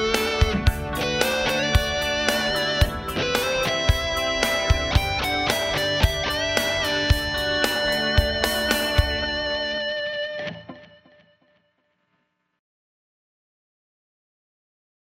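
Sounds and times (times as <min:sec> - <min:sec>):
goldtop guitar neck high gain: 0:00.0 - 0:11.5.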